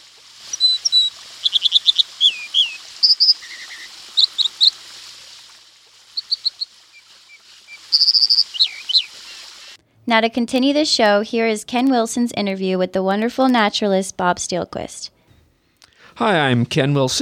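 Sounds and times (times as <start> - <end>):
stream bird's clear ringing song: 0.5 - 4.8, 6.2 - 6.7, 7.7 - 9.4
speech: 10.1 - 15.0, 16.2 - 17.1.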